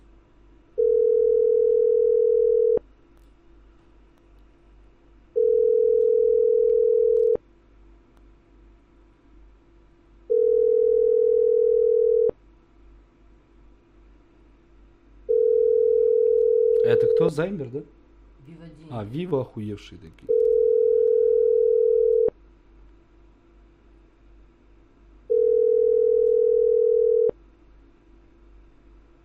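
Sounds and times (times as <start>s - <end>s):
telephone ringing tone while calling back a loan collector: 0.8s - 2.8s, 5.4s - 7.4s, 10.3s - 12.3s, 15.3s - 17.2s, 20.3s - 22.3s, 25.3s - 27.3s
speech: 17.4s - 18.0s, 18.9s - 20.3s.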